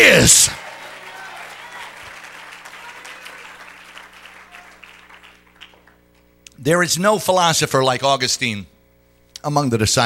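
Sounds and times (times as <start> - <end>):
speech: 0.0 - 0.6, 6.6 - 8.8, 9.4 - 10.0
audience clapping hands: 0.0 - 6.3.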